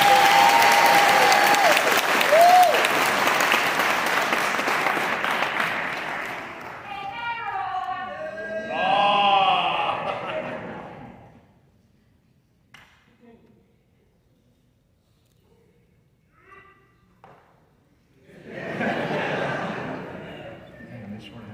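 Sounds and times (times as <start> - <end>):
audience applause: 0.0 - 7.2
laughter: 8.8 - 11.4, 18.2 - 20.9.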